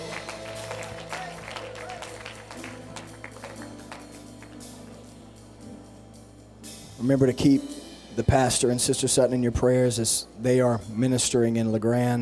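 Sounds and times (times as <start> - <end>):
audience clapping hands in praise: 0.0 - 5.0
speech: 7.0 - 12.1.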